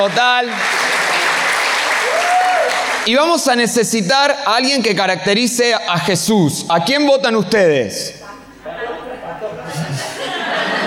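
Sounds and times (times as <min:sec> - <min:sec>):
speech: 0:00.0 - 0:00.8, 0:03.0 - 0:08.8
audience applause: 0:00.0 - 0:03.1
laughter: 0:08.6 - 0:10.8.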